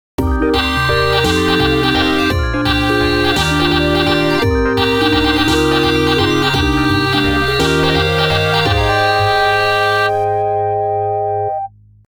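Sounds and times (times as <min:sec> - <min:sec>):
guitar: 0:00.2 - 0:11.5.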